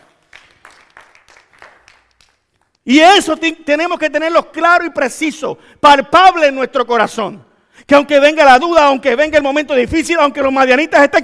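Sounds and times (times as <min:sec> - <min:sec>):
audience applauding: 0:00.0 - 0:02.8
speech: 0:02.8 - 0:11.2.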